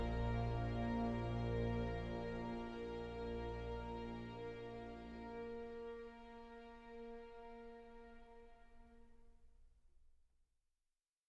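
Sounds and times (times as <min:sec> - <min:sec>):
bagpipes: 0:00.0 - 0:08.5.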